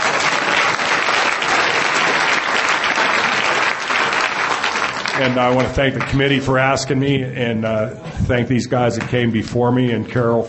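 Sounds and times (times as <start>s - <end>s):
audience applause: 0.0s - 6.7s
speech: 5.2s - 10.4s.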